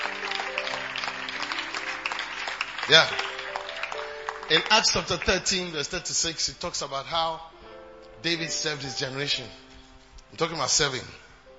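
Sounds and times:
audience clapping: 0.0s - 6.0s
speech: 2.9s - 3.3s, 4.5s - 7.5s, 8.2s - 9.6s, 10.3s - 11.2s.

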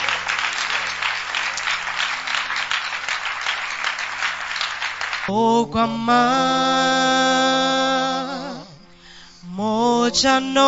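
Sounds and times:
audience clapping hands: 0.0s - 5.3s
speech: 5.3s - 7.9s, 9.6s - 10.6s.

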